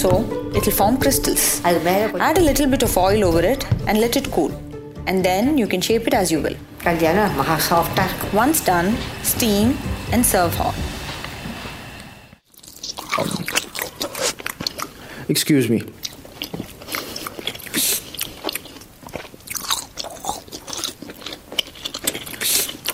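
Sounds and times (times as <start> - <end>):
speech: 0.0 - 10.9, 15.3 - 16.5
wet chewing of kurukattai dumplings: 12.4 - 15.1, 15.7 - 22.9.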